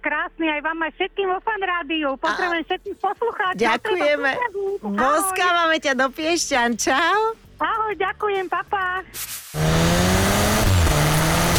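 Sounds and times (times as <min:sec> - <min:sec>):
speech: 0:00.2 - 0:10.2
Cupra car engine roaring in an advert: 0:09.6 - 0:11.5.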